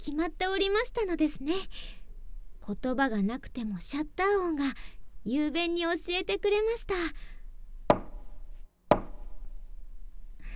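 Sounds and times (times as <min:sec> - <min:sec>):
speech: 0:00.0 - 0:02.0, 0:02.6 - 0:07.3
wooden mallet strikes: 0:07.9 - 0:08.3, 0:08.9 - 0:09.4.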